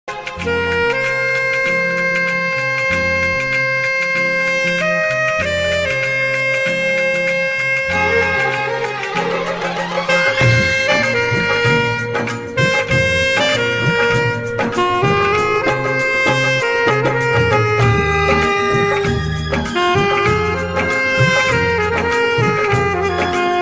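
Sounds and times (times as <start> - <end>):
Hindi saxophone ringtone: 0.3 - 23.5.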